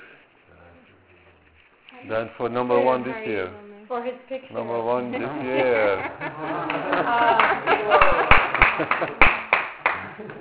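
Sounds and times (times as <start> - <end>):
speech: 1.9 - 9.4, 10.2 - 10.4
laughter: 5.0 - 10.4
hand clapping: 6.6 - 10.4.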